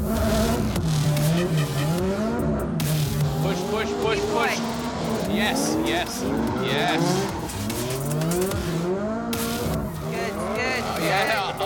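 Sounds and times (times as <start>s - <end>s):
steady car engine roar: 0.0s - 11.6s
tyres squealing as a car drifts on a drift course: 3.3s - 8.8s, 9.8s - 11.6s
speech: 5.9s - 7.4s.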